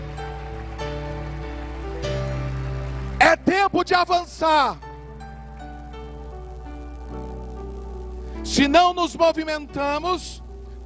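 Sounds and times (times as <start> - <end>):
audience applauding: 0.0 - 8.4
speech: 3.3 - 4.9, 8.5 - 10.8.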